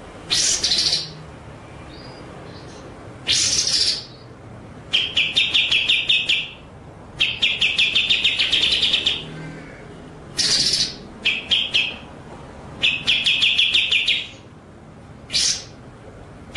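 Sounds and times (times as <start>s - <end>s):
white-rumped shama song: 0.3s - 1.2s, 1.8s - 9.4s, 10.3s - 12.1s, 12.8s - 14.5s, 15.2s - 15.8s.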